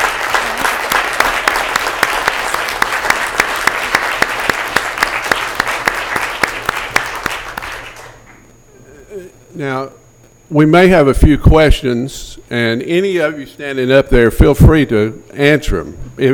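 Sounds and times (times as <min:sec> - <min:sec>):
audience applause: 0:00.0 - 0:08.4
speech: 0:09.6 - 0:16.3.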